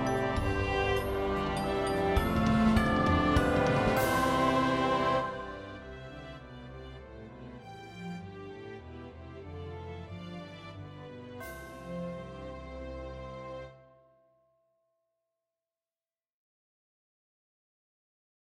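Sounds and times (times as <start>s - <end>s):
viola melody: 0.0s - 11.2s.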